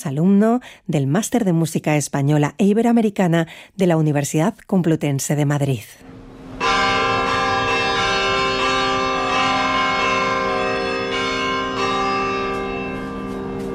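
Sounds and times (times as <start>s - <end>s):
speech: 0.0s - 6.1s
church bells ringing: 6.1s - 13.7s.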